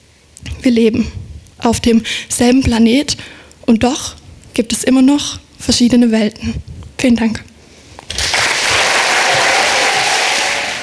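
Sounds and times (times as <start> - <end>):
speech: 0.6 - 7.5
thunderous applause: 8.1 - 10.8.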